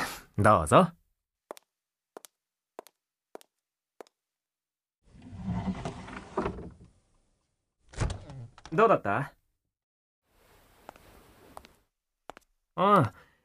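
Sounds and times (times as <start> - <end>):
speech: 0.4 - 1.0, 8.7 - 9.4, 12.8 - 13.2
cupboard being opened: 5.1 - 7.0.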